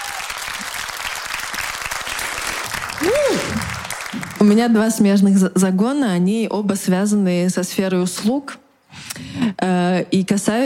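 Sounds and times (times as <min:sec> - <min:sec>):
whoop: 0:00.0 - 0:00.6, 0:03.0 - 0:03.8
crowd clapping: 0:00.0 - 0:05.0
speech: 0:04.4 - 0:08.6, 0:09.4 - 0:10.6.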